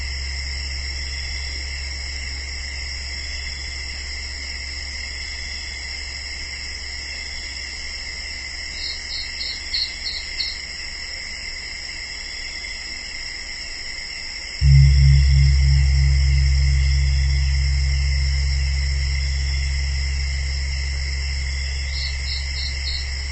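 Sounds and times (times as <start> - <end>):
gongs ringing: 14.6 - 22.3.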